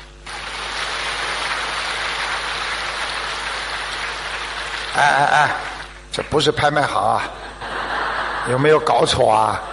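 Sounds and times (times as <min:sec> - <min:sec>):
audience applause: 0:00.2 - 0:06.0
speech: 0:05.0 - 0:07.4, 0:08.4 - 0:09.7
laughter: 0:07.0 - 0:09.7.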